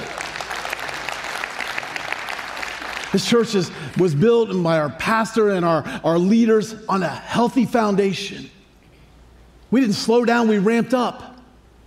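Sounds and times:
audience applause: 0.0 - 3.4
speech: 3.1 - 8.6, 9.7 - 11.3.

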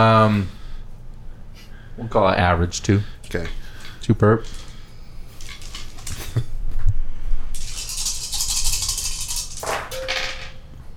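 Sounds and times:
speech: 0.0 - 0.6, 2.0 - 4.6
dice rattling and clattering across a hard surface: 7.6 - 10.5.

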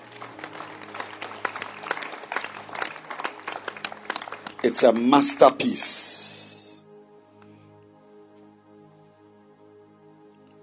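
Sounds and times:
audience clapping hands: 0.0 - 6.7
speech: 4.6 - 6.2.

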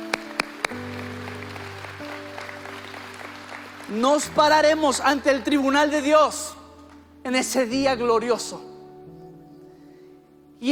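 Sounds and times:
audience clapping: 0.0 - 4.6
speech: 3.9 - 6.6, 7.2 - 8.7.

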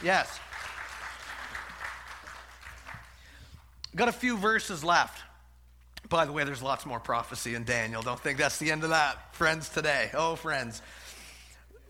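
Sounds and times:
speech: 0.0 - 0.4, 3.9 - 5.3, 6.0 - 11.0
audience applause: 0.0 - 3.2.

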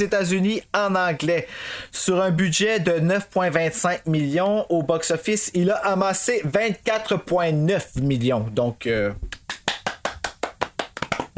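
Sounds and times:
speech: 0.0 - 9.4
one person clapping hands: 9.3 - 11.3.

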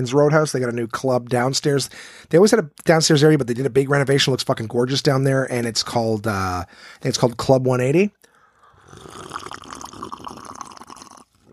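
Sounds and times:
speech: 0.0 - 8.2
slurping a drink: 8.6 - 11.5.

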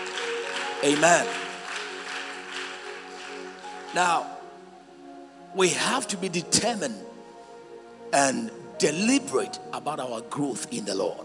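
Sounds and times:
audience clapping hands: 0.0 - 4.4
speech: 0.8 - 1.4, 3.9 - 4.4, 5.5 - 7.1, 8.1 - 11.2.

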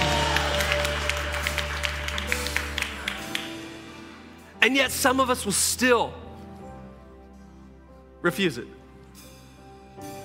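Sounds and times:
audience clapping in praise: 0.0 - 4.1
speech: 4.6 - 6.2, 8.2 - 8.8.

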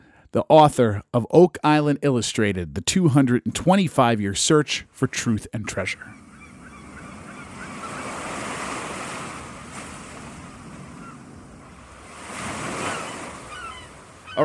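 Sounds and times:
speech: 0.3 - 6.2
surf on a beach: 5.6 - 14.4
faint birds honking: 5.7 - 14.4.

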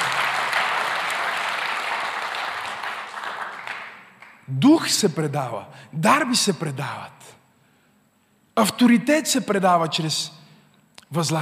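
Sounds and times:
audience applause: 0.0 - 4.4
speech: 4.5 - 7.4, 8.6 - 10.4, 11.1 - 11.3.

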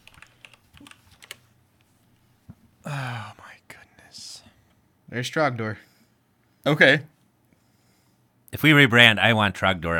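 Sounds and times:
typing a Google search on a computer keyboard: 0.0 - 1.4
speech: 5.1 - 5.9, 6.6 - 7.1, 8.6 - 9.9.

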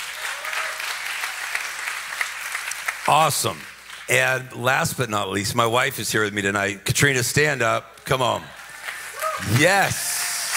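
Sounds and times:
crowd applauding: 0.0 - 4.1, 8.4 - 10.5
speech: 3.1 - 8.6, 9.4 - 10.0.

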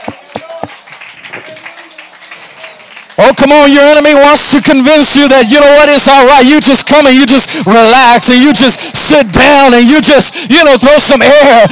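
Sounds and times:
audience clapping hands: 0.0 - 5.6
speech: 3.4 - 11.7.

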